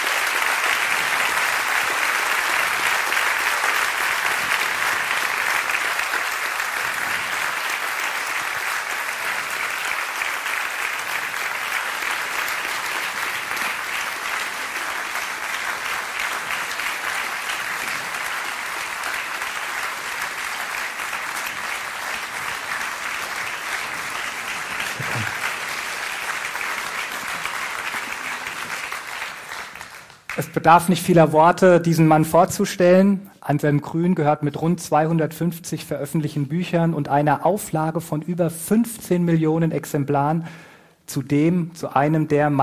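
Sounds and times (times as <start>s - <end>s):
warm audience applause: 0.0s - 31.0s
speech: 30.5s - 42.6s.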